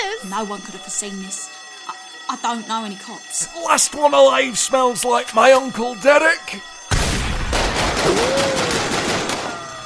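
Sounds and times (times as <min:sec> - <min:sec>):
speech: 0:00.2 - 0:01.6, 0:02.3 - 0:06.7, 0:08.1 - 0:08.6
rapid automatic gunfire in a video game robbery scene: 0:07.5 - 0:09.5.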